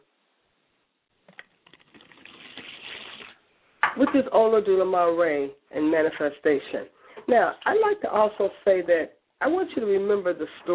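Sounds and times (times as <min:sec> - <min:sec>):
liquid being poured as a libation: 0:01.2 - 0:03.4
speech: 0:04.0 - 0:10.7.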